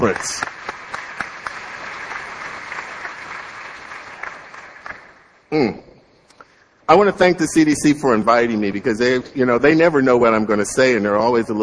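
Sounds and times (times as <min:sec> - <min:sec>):
speech: 0:00.0 - 0:00.5, 0:05.5 - 0:05.8, 0:06.9 - 0:11.6
audience applause: 0:00.0 - 0:05.3.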